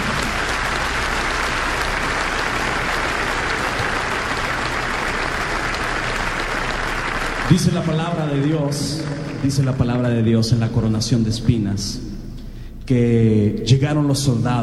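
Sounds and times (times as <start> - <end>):
audience applauding: 0.0 - 10.1
speech: 7.5 - 12.1, 12.9 - 14.6.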